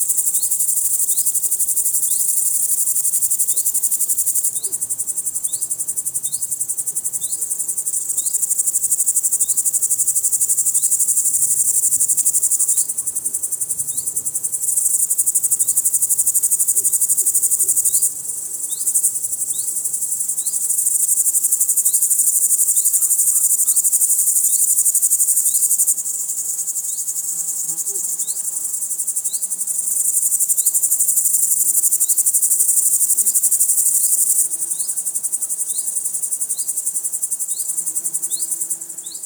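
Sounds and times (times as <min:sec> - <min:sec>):
grasshoppers in a field: 0:00.0 - 0:39.2
insects in a field: 0:00.0 - 0:39.2.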